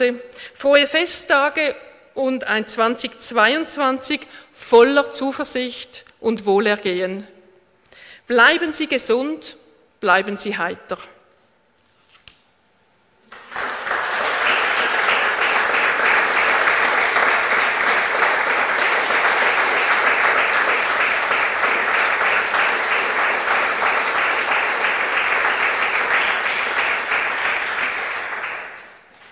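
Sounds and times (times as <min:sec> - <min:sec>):
speech: 0:00.0 - 0:07.3, 0:08.3 - 0:11.1
applause: 0:13.2 - 0:29.2.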